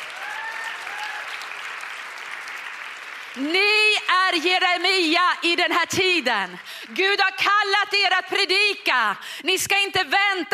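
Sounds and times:
audience applause: 0:00.0 - 0:05.1
speech: 0:03.4 - 0:03.7, 0:04.3 - 0:10.5.

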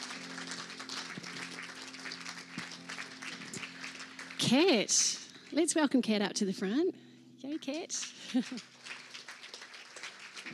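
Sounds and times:
audience applause at a Mother's Day talk event: 0:00.0 - 0:05.3, 0:07.5 - 0:10.5
speech: 0:04.4 - 0:08.7.

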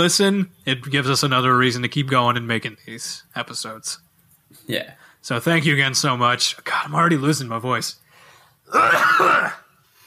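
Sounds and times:
speech: 0:00.0 - 0:08.0, 0:08.7 - 0:09.6
sneeze: 0:08.7 - 0:09.7.

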